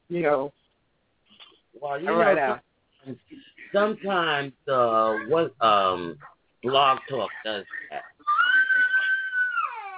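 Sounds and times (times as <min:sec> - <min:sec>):
speech: 0:00.1 - 0:00.6, 0:01.8 - 0:08.1
baby crying and screaming: 0:08.0 - 0:09.9.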